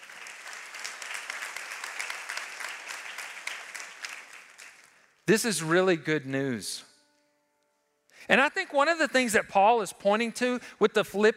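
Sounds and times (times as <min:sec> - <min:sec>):
audience clapping: 0:00.0 - 0:05.8
speech: 0:05.3 - 0:06.9, 0:08.3 - 0:11.3.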